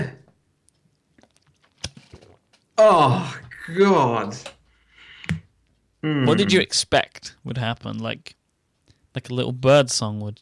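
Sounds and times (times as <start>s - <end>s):
mouth smacks and clicks: 0.6s - 2.5s
person gulping water: 0.8s - 2.7s
speech: 2.8s - 4.6s, 6.0s - 8.4s, 9.2s - 10.4s.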